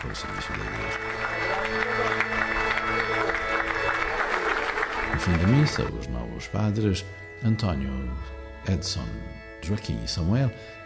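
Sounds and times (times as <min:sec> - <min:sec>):
speech: 0:00.0 - 0:03.7, 0:05.1 - 0:10.8
assembly applauding: 0:00.0 - 0:06.0.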